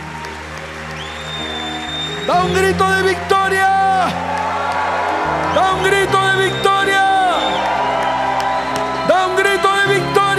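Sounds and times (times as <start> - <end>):
audience applauding loudly: 0.0 - 10.3
speech: 2.3 - 4.3.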